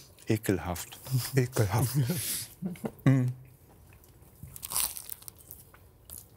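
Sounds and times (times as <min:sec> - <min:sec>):
speech: 0:00.3 - 0:03.4
person chewing a sandwich with coleslaw, sweet mustard and braised meat: 0:03.7 - 0:06.3.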